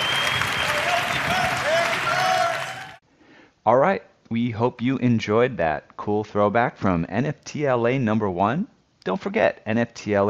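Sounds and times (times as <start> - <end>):
audience applause: 0.0 - 3.0
faint tonal whistles or cheers: 0.0 - 3.0
speech: 3.7 - 10.2.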